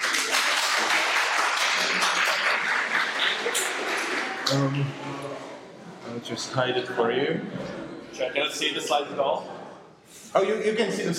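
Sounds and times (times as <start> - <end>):
audience applause: 0.0 - 4.8
speech: 4.5 - 5.5, 6.1 - 9.5, 10.3 - 11.1.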